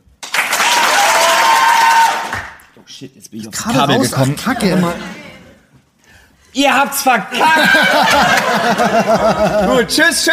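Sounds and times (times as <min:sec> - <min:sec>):
crowd applause sound effect from soundboard: 0:00.2 - 0:02.6, 0:07.5 - 0:09.6
speech: 0:03.0 - 0:05.1, 0:06.6 - 0:10.3
laughter: 0:07.3 - 0:10.2.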